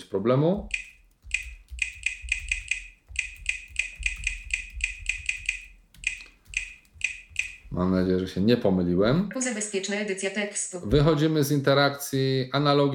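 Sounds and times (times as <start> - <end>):
speech: 0.0 - 0.8, 7.7 - 12.9
typing a password on laptop keyboard: 0.6 - 7.8.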